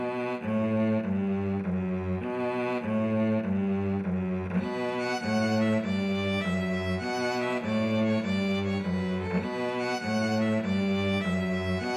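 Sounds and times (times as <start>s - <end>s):
string quartet playing in a hall: 0.0s - 11.9s.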